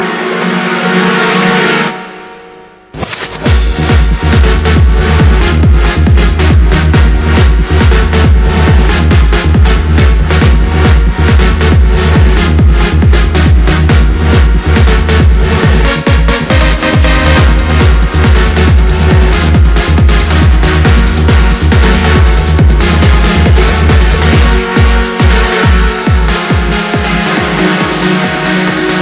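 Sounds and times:
trance music mix: 0.0 - 29.0.

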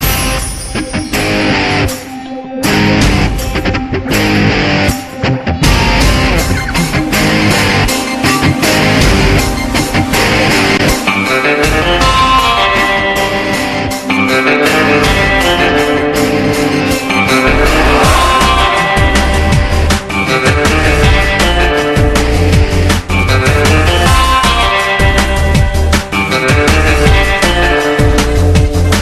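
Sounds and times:
rocking guitar mix: 0.0 - 29.0.

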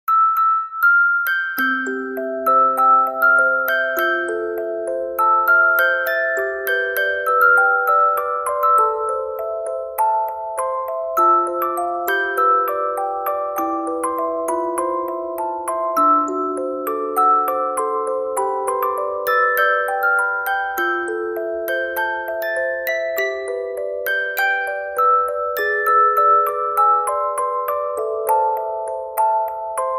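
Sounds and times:
music box: 0.1 - 29.9.

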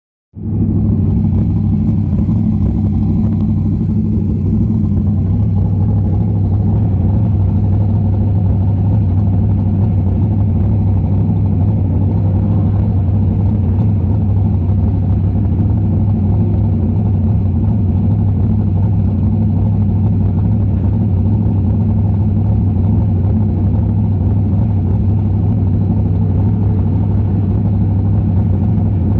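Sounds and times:
sprint car engine: 0.4 - 29.1.

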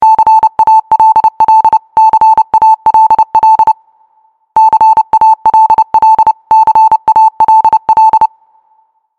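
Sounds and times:
morse code beeps: 0.0 - 3.8, 4.6 - 8.3.

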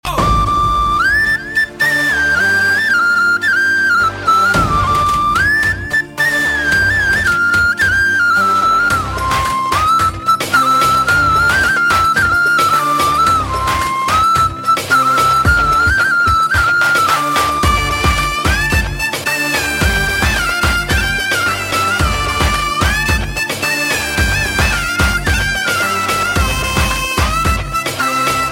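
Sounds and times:
Aegean flute: 0.0 - 28.4.

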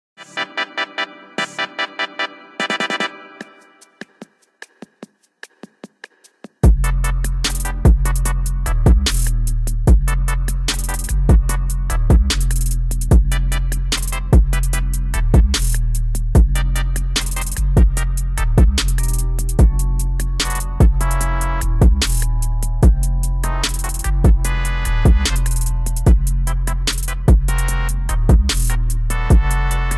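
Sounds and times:
bass intro: 6.6 - 29.9.

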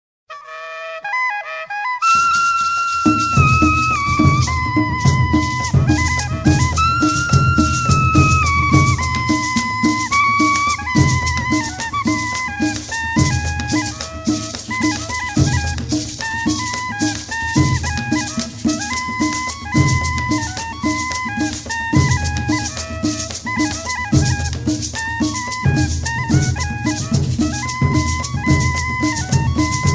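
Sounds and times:
cumbia music: 0.3 - 29.9.

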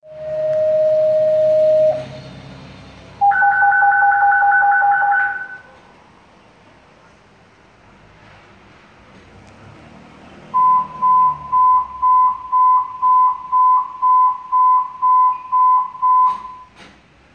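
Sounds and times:
dispatch tone: 0.0 - 2.4, 3.2 - 5.8, 10.5 - 16.8.

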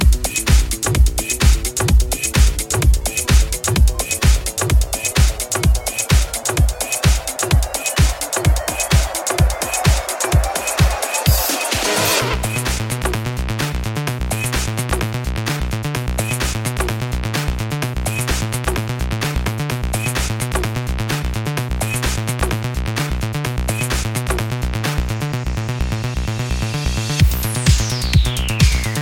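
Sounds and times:
house music: 0.0 - 29.0.

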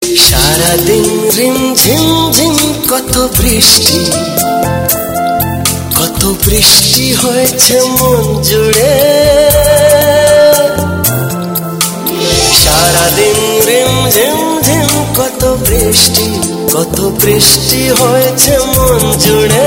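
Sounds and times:
Bengali romantic song: 0.0 - 19.6.

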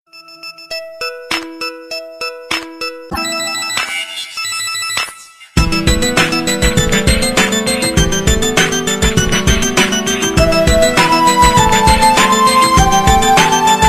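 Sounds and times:
SMS tone remix: 0.1 - 13.8.

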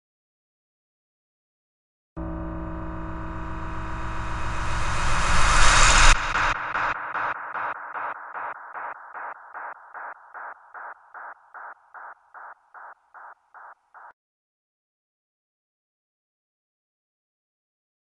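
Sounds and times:
suspense sound: 2.2 - 14.1.

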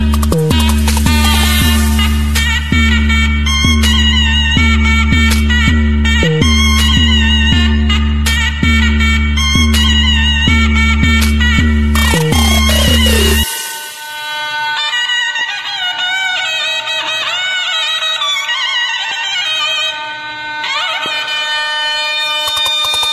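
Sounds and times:
zurna playing: 0.1 - 22.8.

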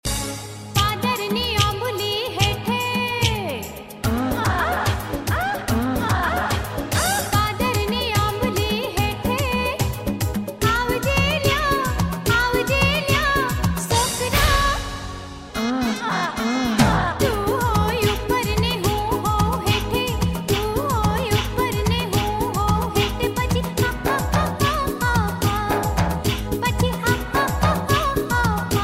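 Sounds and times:
Gujarati jalsa festive music: 0.0 - 28.8.

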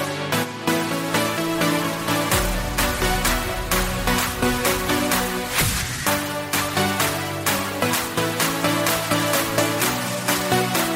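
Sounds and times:
rave beat: 0.1 - 10.9.

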